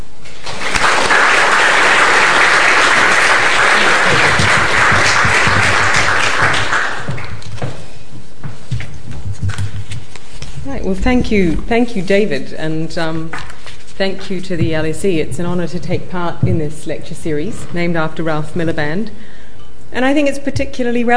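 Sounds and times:
lecture audience applause welcoming the speaker at an LSE lecture: 0.3 - 7.5
speech: 10.9 - 19.3, 19.9 - 21.1.

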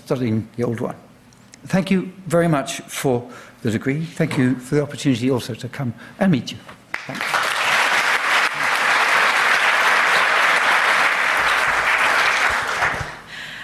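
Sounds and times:
speech: 0.1 - 7.3
audience applause: 6.9 - 13.3.

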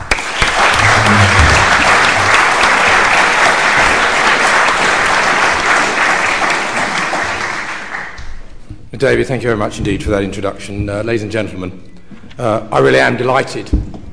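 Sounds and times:
lecture audience applause welcoming a speaker to the stage: 0.0 - 8.5
speech: 9.0 - 13.9.

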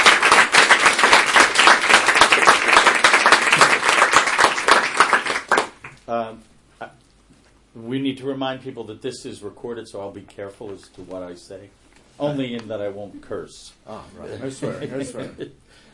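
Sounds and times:
audience at the LSE clapping for a speaker: 0.0 - 6.0
speech: 6.1 - 7.0, 7.8 - 15.8
laughter: 14.4 - 15.6.

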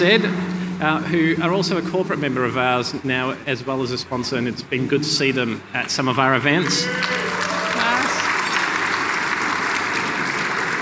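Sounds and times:
speech: 0.0 - 7.2
audience clapping for a sponsor: 6.5 - 10.8.

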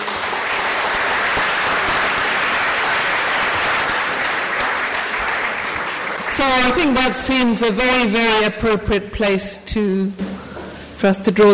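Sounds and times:
audience round of applause: 0.0 - 6.8
speech: 6.4 - 10.4, 11.0 - 11.5.

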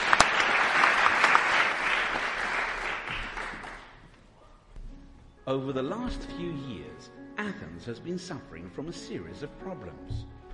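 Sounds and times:
audience applause welcoming panelists: 0.0 - 4.1
speech: 5.5 - 10.4.

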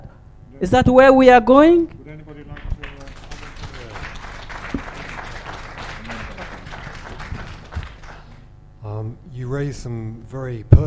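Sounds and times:
speech: 0.6 - 2.5, 9.0 - 10.8
audience applause at a panel discussion: 2.4 - 8.5.

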